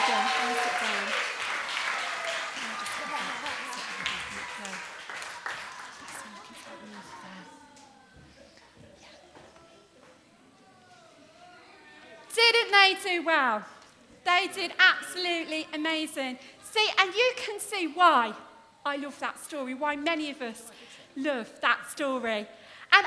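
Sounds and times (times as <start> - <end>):
crowd applauding for children: 0.0 - 7.6
speech: 12.9 - 23.0.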